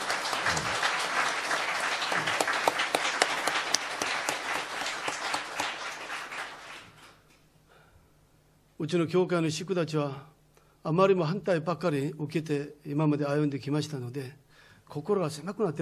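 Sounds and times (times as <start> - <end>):
audience applause: 0.0 - 7.2
speech: 8.8 - 15.8.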